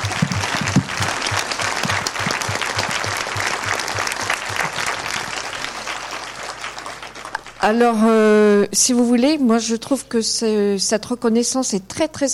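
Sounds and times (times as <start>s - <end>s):
audience applause: 0.0s - 7.6s
speech: 7.6s - 12.3s.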